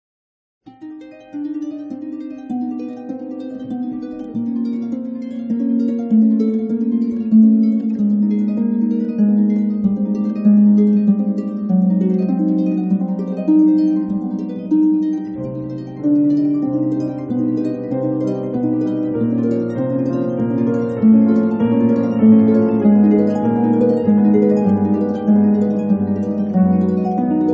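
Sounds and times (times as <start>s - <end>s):
classical piece: 0.7s - 27.5s.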